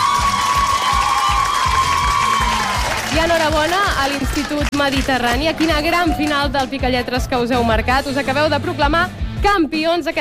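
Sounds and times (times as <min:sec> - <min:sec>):
audience applause: 0:00.0 - 0:06.7
speech: 0:03.2 - 0:10.2.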